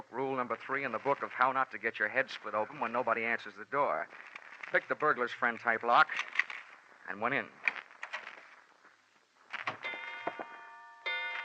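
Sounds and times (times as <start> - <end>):
speech: 0.4 - 6.3, 7.1 - 7.6
grandfather clock tolling 10 p.m.: 9.8 - 11.4.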